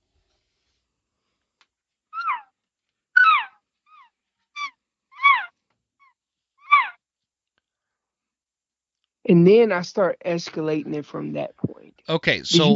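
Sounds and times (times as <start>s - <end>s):
imitated calf and cow calls: 3.2s - 5.5s, 6.6s - 7.0s
speech: 9.3s - 12.7s.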